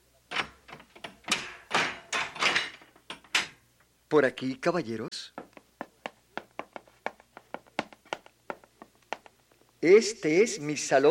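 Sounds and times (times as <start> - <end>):
door being opened: 0.3 - 3.6
speech: 4.1 - 5.5, 9.8 - 11.0.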